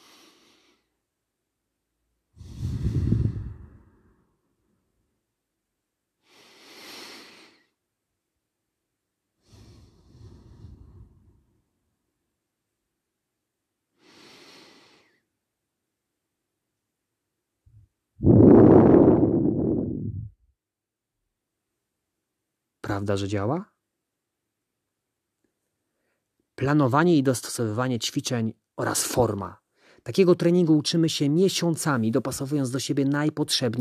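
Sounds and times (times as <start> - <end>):
slow calming breathing: 0.0 - 1.0, 2.4 - 4.5, 6.2 - 7.8, 9.4 - 11.6, 13.9 - 15.3, 18.2 - 20.4
speech: 23.0 - 23.8, 26.6 - 33.7.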